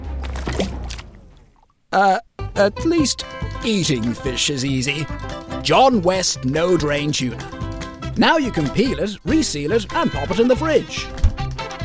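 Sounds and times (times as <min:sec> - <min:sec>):
fishing line cast into water: 0:00.0 - 0:01.6
speech: 0:02.0 - 0:11.2.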